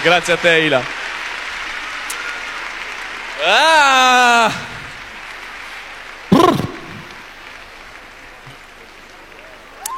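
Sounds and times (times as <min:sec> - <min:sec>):
speech: 0:00.0 - 0:01.0, 0:03.4 - 0:04.7
audience clapping for a performer on stage: 0:00.0 - 0:09.9
person whooping loudly: 0:03.4 - 0:04.7, 0:06.3 - 0:07.1.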